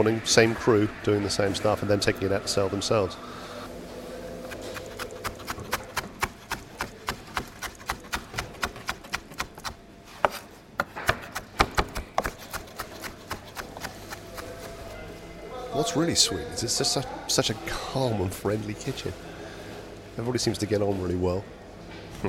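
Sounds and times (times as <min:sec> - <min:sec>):
speech: 0:00.0 - 0:03.4, 0:15.9 - 0:19.4, 0:20.2 - 0:21.6
soft hum: 0:00.0 - 0:22.2
knife chopping food on a board in a kitchen: 0:04.4 - 0:14.8.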